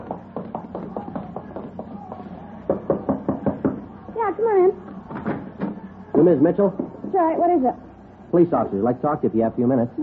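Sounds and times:
knocking on a door: 0.0s - 3.8s, 6.8s - 7.2s
speech: 6.2s - 10.0s.

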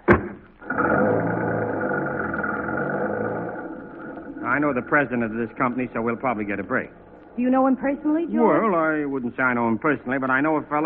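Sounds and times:
car engine starting and driving off: 0.1s - 6.9s
speech: 4.6s - 10.8s.

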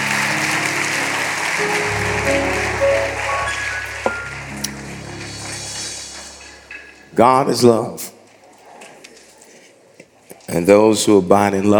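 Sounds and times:
audience applauding: 0.0s - 7.1s
speech: 7.2s - 8.1s, 10.5s - 11.7s.

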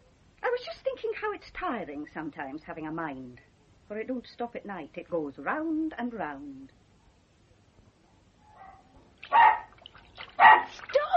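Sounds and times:
speech: 1.3s - 6.8s
dog barking: 8.5s - 9.7s, 10.4s - 10.8s.

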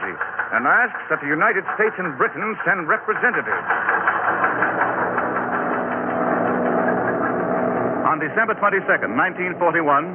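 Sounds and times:
aircraft engines roaring: 0.0s - 10.1s
speech: 0.5s - 5.0s, 8.1s - 10.1s.

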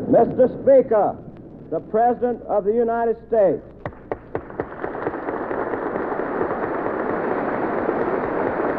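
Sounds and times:
speech: 0.1s - 3.7s
large crowd standing and applauding: 4.1s - 8.7s.

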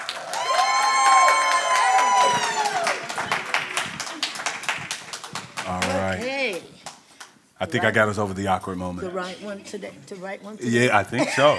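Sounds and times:
crowd cheering: 0.0s - 6.6s
speech: 7.6s - 11.5s.

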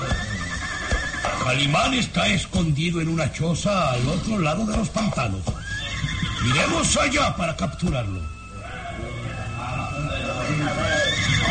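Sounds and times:
horse neighing: 0.0s - 2.1s, 3.8s - 4.6s, 5.5s - 7.6s, 8.2s - 11.4s
speech: 1.5s - 5.6s, 6.4s - 8.4s.

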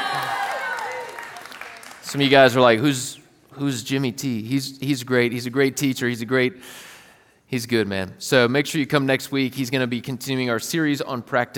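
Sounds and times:
audience applause: 0.0s - 2.5s
speech: 2.1s - 6.9s, 7.5s - 11.5s.

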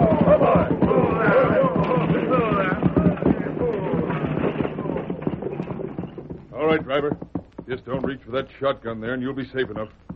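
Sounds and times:
men shouting: 0.0s - 5.2s
stagecoach horses' hooves clattering: 0.0s - 10.1s
speech: 6.8s - 10.1s.

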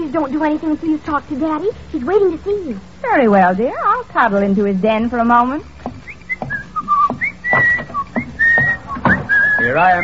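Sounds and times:
speech: 0.1s - 5.7s, 9.6s - 10.0s
person whistling a tune: 6.0s - 10.0s.

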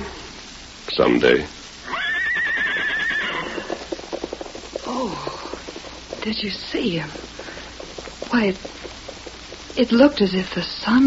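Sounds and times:
speech: 1.0s - 1.6s, 6.2s - 7.3s, 8.4s - 8.8s, 9.8s - 11.0s
horse neighing: 1.8s - 4.2s.

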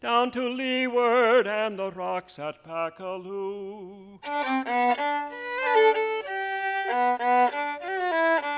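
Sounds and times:
sung folk song about the sea: 0.0s - 4.3s
speech: 0.0s - 6.2s, 6.9s - 8.4s.

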